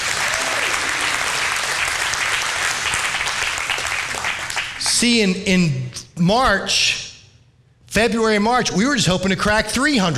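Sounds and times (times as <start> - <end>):
audience applause: 0.0 - 4.9
speech: 5.0 - 7.0, 7.9 - 10.1.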